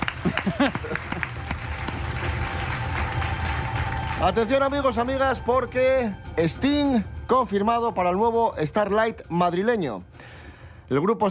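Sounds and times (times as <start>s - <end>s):
laughter: 0.0s - 1.7s
audience applause: 0.0s - 5.3s
speech: 4.2s - 10.1s, 10.9s - 11.3s.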